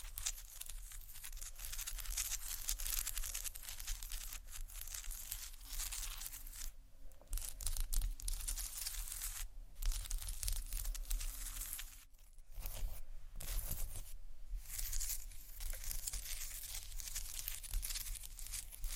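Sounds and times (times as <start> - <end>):
tiles being scratched: 0.0 - 18.9.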